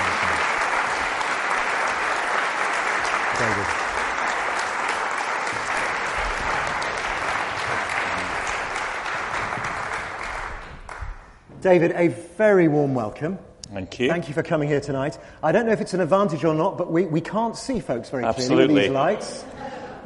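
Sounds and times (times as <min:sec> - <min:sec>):
audience applause welcoming a professor onto the stage: 0:00.0 - 0:11.4
speech: 0:11.6 - 0:20.0.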